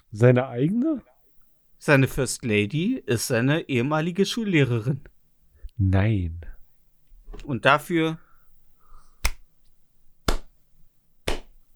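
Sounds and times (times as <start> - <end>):
speech: 0.1 - 1.1, 1.8 - 5.1, 5.8 - 6.5, 7.3 - 8.2
slow clap: 8.2 - 10.6.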